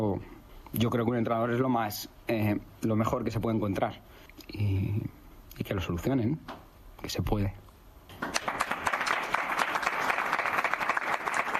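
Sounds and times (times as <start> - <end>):
speech: 0.0 - 7.6
applause from the press of Madrid: 8.1 - 11.5.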